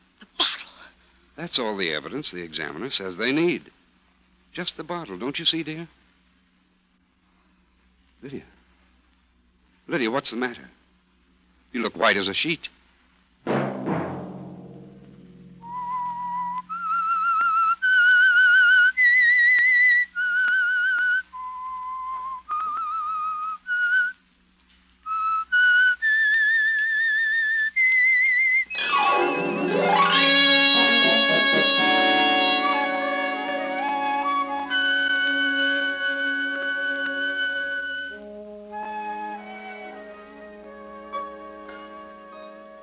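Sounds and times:
speech: 0:01.4 - 0:03.8, 0:04.6 - 0:06.0, 0:08.2 - 0:08.6, 0:09.9 - 0:10.8, 0:11.7 - 0:12.8
lone whistled theme melody: 0:15.6 - 0:24.1, 0:25.1 - 0:42.8
loud full orchestral swell: 0:28.7 - 0:42.8.

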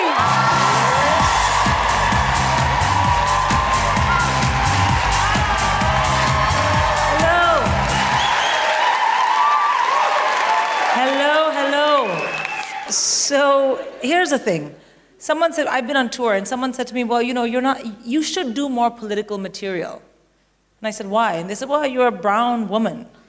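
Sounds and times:
Hackney Empire audience applauding a stand-up comedian: 0:00.0 - 0:13.0
speech: 0:14.2 - 0:20.1, 0:20.8 - 0:23.2.

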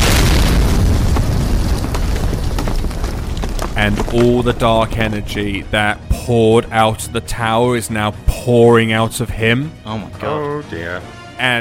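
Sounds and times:
explosion sound effect: 0:00.0 - 0:06.6
speech: 0:03.8 - 0:11.6.

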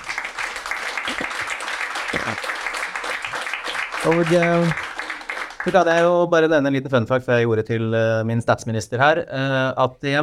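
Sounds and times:
audience applause: 0:00.0 - 0:06.1
speech: 0:02.3 - 0:02.5, 0:04.0 - 0:04.8, 0:05.6 - 0:10.2.

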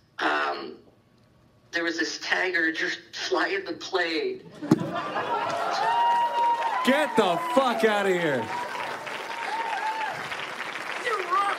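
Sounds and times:
speech: 0:01.8 - 0:06.1, 0:06.8 - 0:08.7
laughter: 0:04.5 - 0:06.3
live audience applause: 0:05.2 - 0:11.5
audience cheers and whoops: 0:05.4 - 0:10.4.

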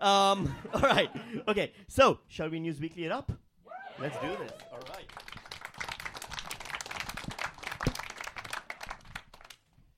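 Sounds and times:
speech: 0:00.0 - 0:03.4, 0:04.0 - 0:05.0
laughter: 0:00.4 - 0:01.4
hesitant clapping from a few people: 0:04.5 - 0:09.8.

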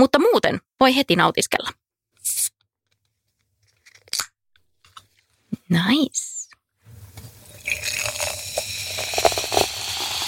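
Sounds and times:
speech: 0:00.0 - 0:02.5, 0:05.7 - 0:06.3
drink can opening: 0:07.6 - 0:10.2.

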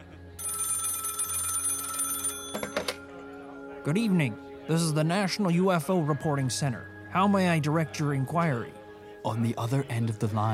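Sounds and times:
old-style telephone bell ringing: 0:00.4 - 0:03.2
speech: 0:03.9 - 0:10.5.

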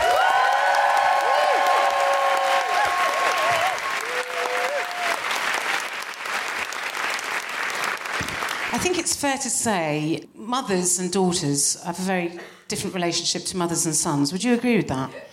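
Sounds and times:
stand-up comedy audience clapping in Manchester: 0:00.0 - 0:09.1
speech: 0:08.8 - 0:15.3.

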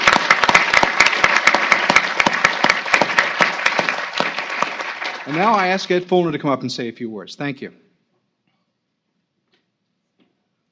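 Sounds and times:
audience applause: 0:00.0 - 0:06.3
speech: 0:05.3 - 0:07.8.

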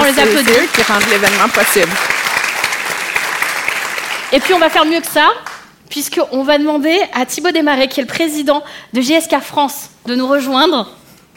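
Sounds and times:
crowd clapping: 0:00.0 - 0:05.7
speech: 0:00.1 - 0:02.2, 0:04.3 - 0:11.0.

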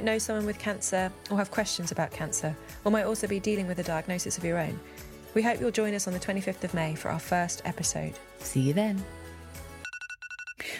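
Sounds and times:
speech: 0:00.0 - 0:09.2
music: 0:00.0 - 0:09.9
phone alarm ringtone with high-pitched electronic beeps: 0:09.8 - 0:10.7.

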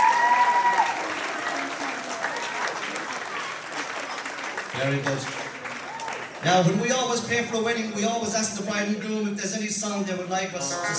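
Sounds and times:
audience applause for bride and groom: 0:00.0 - 0:07.2
speech: 0:04.8 - 0:05.4, 0:06.4 - 0:10.9.

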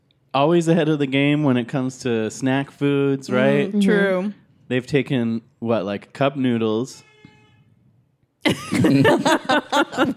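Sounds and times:
speech: 0:00.4 - 0:07.1, 0:08.4 - 0:10.1
raspy brassy horn honk: 0:06.9 - 0:07.9
laughter: 0:08.5 - 0:10.1.

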